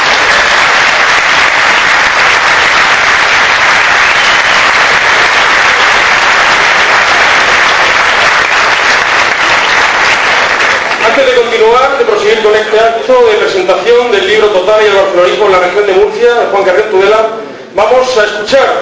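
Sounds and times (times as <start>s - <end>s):
loud audience applause: 0.0s - 11.6s
speech: 12.7s - 18.7s.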